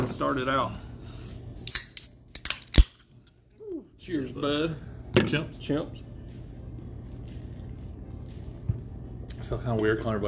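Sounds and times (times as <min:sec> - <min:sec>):
speech: 0:00.0 - 0:00.9, 0:04.0 - 0:06.1, 0:09.5 - 0:10.2
caffeinated drink can cracked open: 0:01.7 - 0:03.1.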